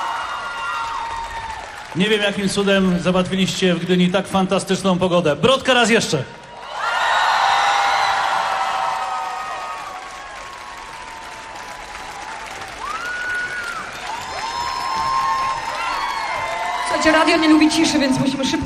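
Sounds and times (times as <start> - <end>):
high whoops from festival crowd: 0.0 - 1.9, 6.5 - 18.0
large festival crowd in Gdynia cheering and shouting: 0.0 - 2.8, 6.4 - 18.6
sustained festival applause: 0.0 - 4.8, 6.1 - 18.6
speech: 2.0 - 6.4, 17.2 - 18.6.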